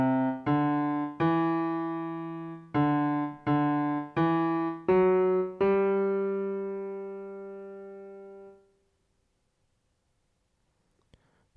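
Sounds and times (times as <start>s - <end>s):
ear training melody: 0.0s - 8.6s.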